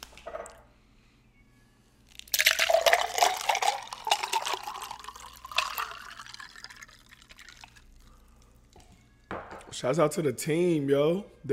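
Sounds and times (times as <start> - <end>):
drink pouring into a glass: 2.1 - 8.2
speech: 9.8 - 11.5.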